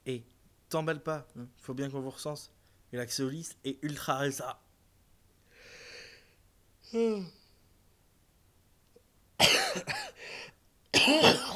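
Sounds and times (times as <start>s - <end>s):
speech: 0.1s - 4.6s, 6.9s - 7.4s, 9.8s - 10.2s, 11.1s - 11.5s
person coughing and choking from a swollen throat: 9.4s - 10.2s, 11.0s - 11.5s.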